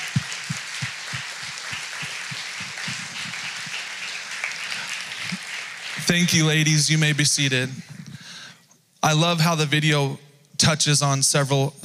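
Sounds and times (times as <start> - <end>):
audience applause: 0.0 - 7.3
speech: 6.1 - 7.9, 9.0 - 11.8.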